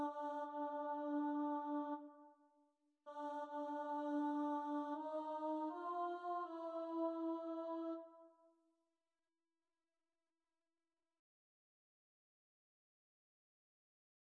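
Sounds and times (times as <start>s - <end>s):
alto choir singing: 0.0s - 2.2s, 3.1s - 8.1s.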